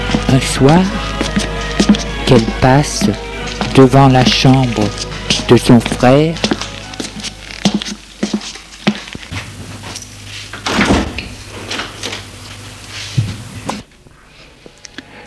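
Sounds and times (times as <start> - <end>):
speech: 0.3 - 6.5
bedroom door opening: 10.5 - 12.3.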